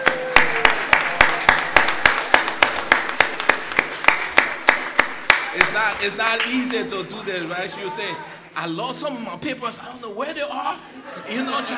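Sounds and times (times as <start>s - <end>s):
audience applause: 0.0s - 6.8s
speech: 5.8s - 11.7s
laughter: 10.8s - 11.7s.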